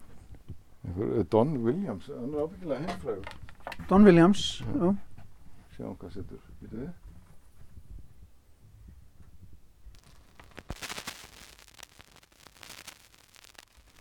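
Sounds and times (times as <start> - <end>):
speech: 1.0 - 5.1, 5.8 - 7.0
vinyl record crackling: 10.0 - 14.0.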